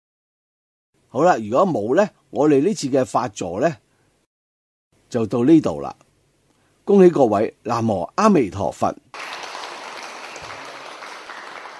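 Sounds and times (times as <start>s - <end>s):
speech: 1.1s - 3.8s, 5.1s - 6.0s, 6.9s - 9.3s
faint audience clapping at the close of a Buddhist dharma talk: 9.1s - 11.7s.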